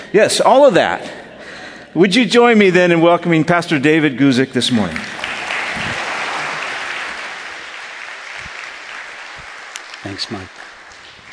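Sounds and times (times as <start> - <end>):
speech: 0.1 - 1.2, 2.0 - 5.1, 10.1 - 10.6
audience applause: 4.9 - 11.3.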